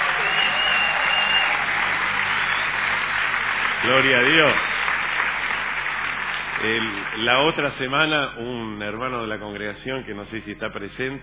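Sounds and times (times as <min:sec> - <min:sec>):
audience applauding: 0:00.0 - 0:08.2
speech: 0:03.8 - 0:04.8, 0:06.6 - 0:11.2.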